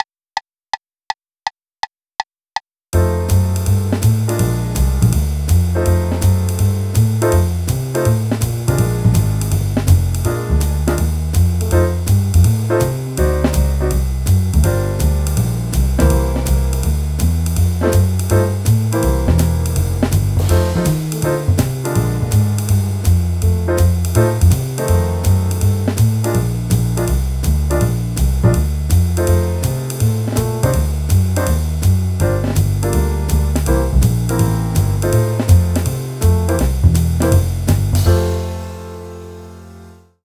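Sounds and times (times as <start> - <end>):
blues music at 164 bpm: 3.0 - 39.4.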